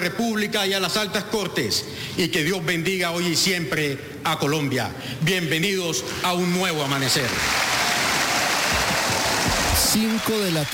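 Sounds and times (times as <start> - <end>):
speech: 0.0 - 7.8, 9.9 - 10.7
auditorium audience of Universidad Santiago de Cali standing and applauding: 7.0 - 10.7.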